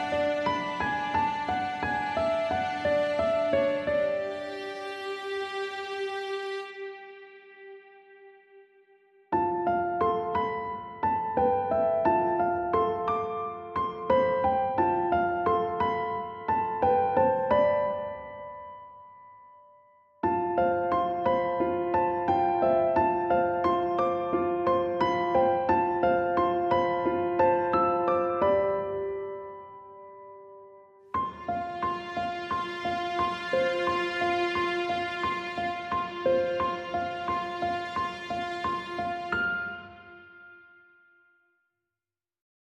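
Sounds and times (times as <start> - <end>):
reduced strings: 0.0 - 9.0, 31.2 - 40.2
reduced piano: 0.0 - 41.6.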